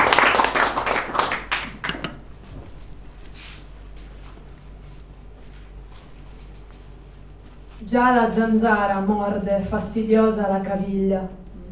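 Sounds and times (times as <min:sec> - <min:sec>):
audience applauding: 0:00.0 - 0:02.2
speech: 0:07.9 - 0:11.4.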